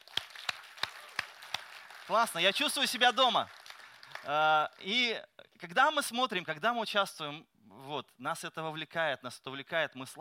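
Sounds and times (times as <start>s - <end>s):
audience applauding: 0.0s - 5.0s
speech: 2.1s - 3.6s, 4.2s - 10.2s.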